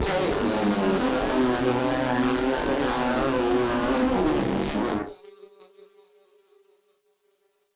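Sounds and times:
battered synth: 0:00.0 - 0:05.1.

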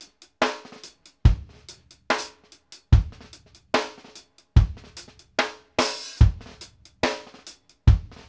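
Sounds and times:
reggae kick drum: 0:01.1 - 0:02.2, 0:03.0 - 0:03.5, 0:04.6 - 0:05.2, 0:05.8 - 0:07.2, 0:07.9 - 0:08.2.

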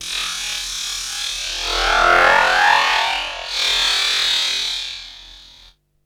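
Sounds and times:
drum and bass effect: 0:01.4 - 0:04.2.

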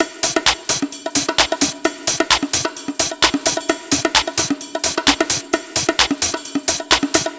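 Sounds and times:
house drum loop: 0:00.0 - 0:07.3.

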